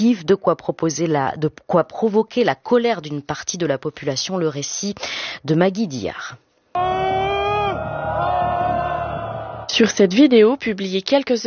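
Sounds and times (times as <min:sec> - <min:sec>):
speech: 0:00.0 - 0:07.2, 0:09.8 - 0:11.4
crowd protesting and shouting in square: 0:06.8 - 0:09.8.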